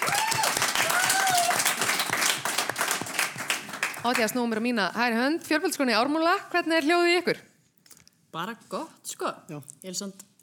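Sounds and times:
audience applause: 0.0 - 4.3
speech: 4.0 - 7.5, 8.3 - 10.3.

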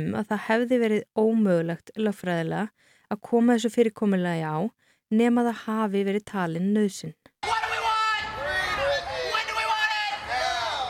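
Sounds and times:
speech: 0.0 - 7.2
crowd of protesters shouting a slogan in unison: 7.4 - 10.8.

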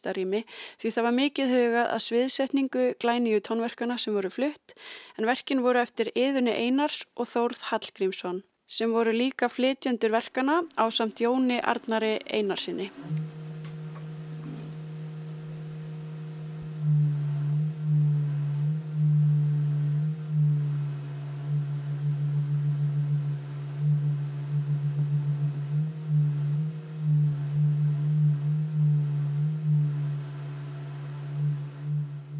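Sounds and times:
speech: 0.0 - 13.4
pipe tones from air blown through tubes: 12.8 - 32.3.

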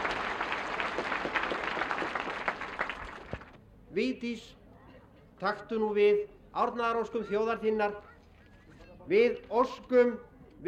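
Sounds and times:
crowd applause: 0.0 - 3.6
speech: 4.0 - 4.6, 5.4 - 8.1, 9.1 - 10.6.

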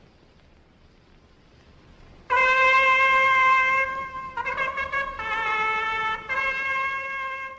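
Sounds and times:
ancient copper trumpet being blown: 2.3 - 7.5.

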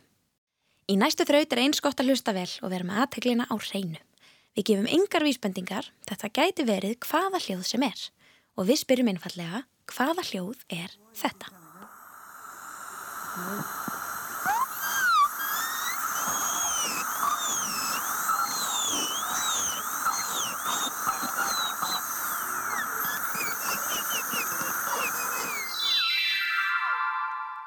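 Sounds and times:
speech: 0.9 - 11.6, 13.4 - 13.9
dentist's drill whining at a high pitch: 11.0 - 26.8.

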